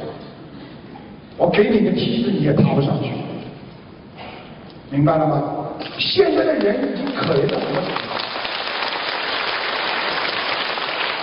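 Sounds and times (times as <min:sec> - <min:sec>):
speech: 0:01.4 - 0:03.2, 0:04.9 - 0:08.2
audience clapping: 0:05.8 - 0:11.2.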